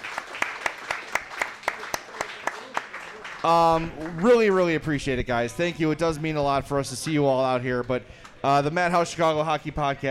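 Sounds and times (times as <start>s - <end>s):
audience applause: 0.0s - 4.6s
speech: 3.4s - 10.1s.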